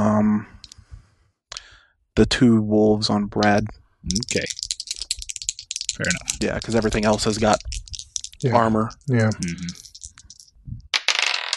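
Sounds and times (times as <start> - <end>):
speech: 2.2 - 4.6, 6.0 - 7.7, 8.4 - 9.8
dice tumbling across a surface: 4.1 - 11.5
small hard objects clattering: 4.1 - 11.5.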